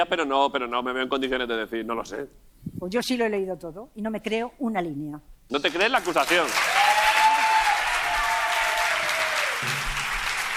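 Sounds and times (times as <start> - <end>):
speech: 0.0 - 6.8
audience applause: 5.6 - 10.5.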